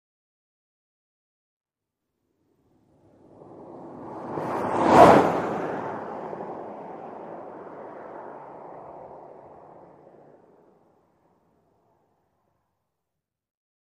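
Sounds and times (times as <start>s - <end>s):
compact car passing by at 100mph: 2.6s - 12.2s.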